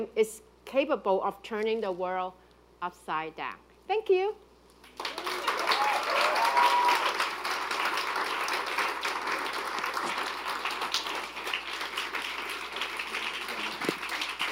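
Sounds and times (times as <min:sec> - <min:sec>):
speech: 0:00.0 - 0:04.4
audience applause: 0:04.9 - 0:14.5.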